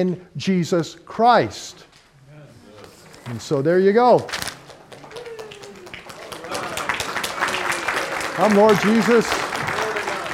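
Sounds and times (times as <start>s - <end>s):
speech: 0.0s - 1.9s, 3.2s - 4.5s, 8.4s - 9.4s
crowd clapping: 4.6s - 10.3s.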